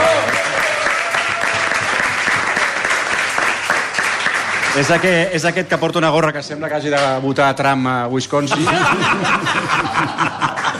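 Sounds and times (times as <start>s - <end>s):
audience applause: 0.0s - 5.3s
speech: 4.8s - 10.7s
laughter: 8.4s - 10.7s.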